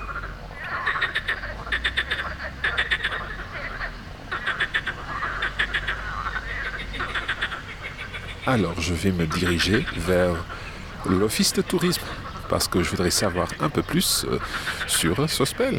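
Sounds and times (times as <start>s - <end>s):
chorus of frogs croaking on the river Bévéra: 0.0s - 15.7s
flowing river water: 0.0s - 15.7s
speech: 8.5s - 15.7s.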